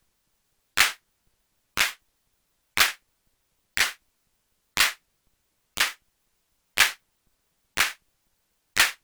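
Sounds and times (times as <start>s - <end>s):
hand clap: 0.8s - 1.0s, 4.8s - 5.0s, 5.8s - 6.0s, 7.8s - 8.0s, 8.8s - 9.0s.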